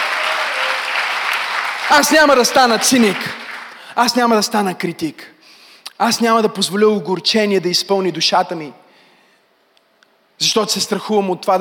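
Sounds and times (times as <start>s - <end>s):
audience applauding: 0.0s - 4.0s
speech: 1.9s - 3.4s, 4.0s - 5.3s, 6.0s - 8.8s, 10.4s - 11.5s.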